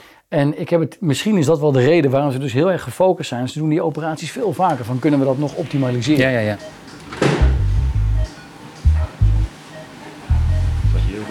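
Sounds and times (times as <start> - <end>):
faint room hiss: 0.0 - 11.2
speech: 0.3 - 7.1
patient monitor beeps: 6.6 - 11.2.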